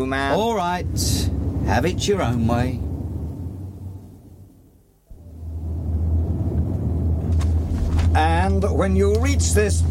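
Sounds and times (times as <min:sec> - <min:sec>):
speech: 0:00.0 - 0:02.9, 0:08.2 - 0:09.9
car engine rumbling in a radio drama scene: 0:00.0 - 0:09.9.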